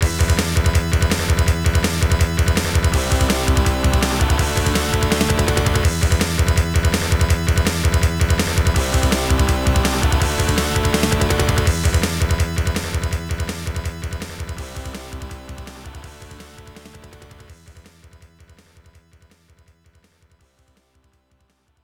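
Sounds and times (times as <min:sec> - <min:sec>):
score tally sound: 0:00.2 - 0:17.4.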